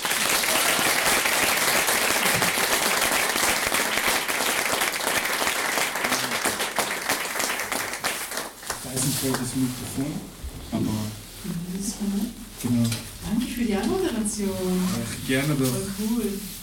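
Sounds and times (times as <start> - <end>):
audience applause: 0.0 - 9.7
speech: 9.2 - 16.5.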